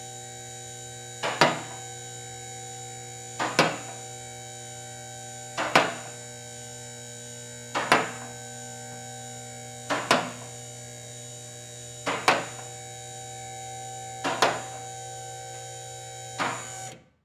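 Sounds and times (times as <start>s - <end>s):
auto shop hydraulic car hoist raising: 1.2s - 2.5s, 3.3s - 4.9s, 5.5s - 6.7s, 7.6s - 10.6s, 11.6s - 17.1s.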